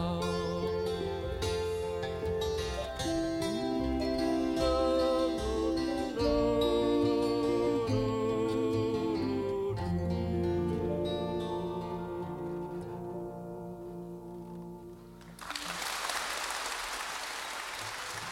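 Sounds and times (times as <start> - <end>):
sustained music passage: 0.1 - 15.4
enthusiastic audience applauding in London in 1968: 15.2 - 18.3.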